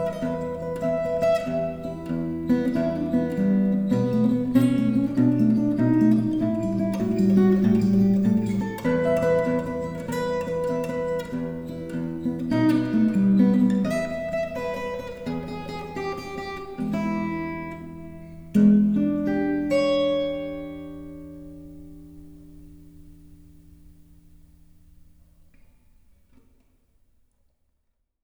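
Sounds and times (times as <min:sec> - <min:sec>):
blues music: 0:00.0 - 0:22.1.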